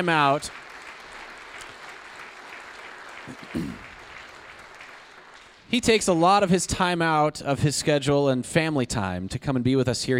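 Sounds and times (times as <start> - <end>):
speech: 0.0 - 0.6, 3.3 - 3.9, 5.7 - 10.1
audience applause: 0.0 - 6.2.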